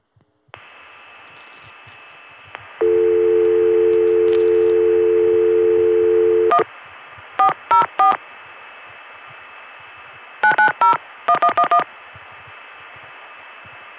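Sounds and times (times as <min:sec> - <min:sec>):
steady telephone dial tone: 0:02.8 - 0:06.7
touch-tone DTMF beeps dialing a vacant long-distance code: 0:02.8 - 0:06.7, 0:10.5 - 0:11.9.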